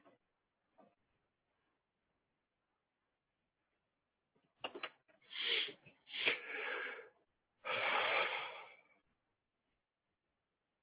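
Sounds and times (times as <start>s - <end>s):
person breathing into a microphone: 5.3s - 9.0s.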